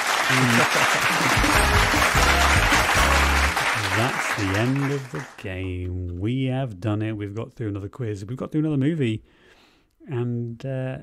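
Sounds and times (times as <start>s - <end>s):
applause: 0.0s - 5.7s
speech: 0.3s - 3.0s, 3.8s - 9.4s, 10.0s - 11.0s.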